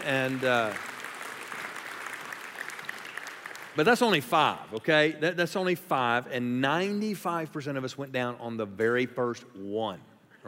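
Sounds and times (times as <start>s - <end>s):
speech: 0.0s - 0.9s, 3.8s - 10.4s
audience applause: 0.0s - 4.5s.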